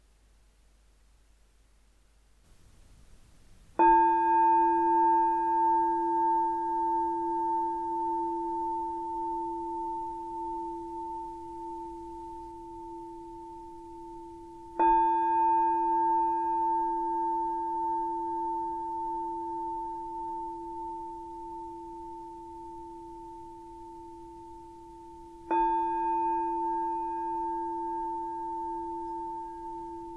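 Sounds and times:
meditation bell ringing: 3.8 - 30.1.

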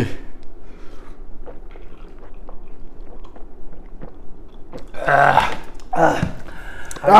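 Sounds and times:
person gulping beer after a toast: 1.4 - 7.1.

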